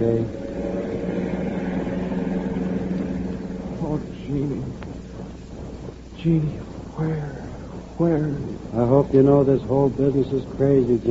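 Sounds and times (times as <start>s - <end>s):
speech: 0.0s - 0.5s, 4.0s - 4.8s, 6.2s - 7.4s, 8.0s - 11.0s
car engine hum while driving: 0.0s - 6.2s.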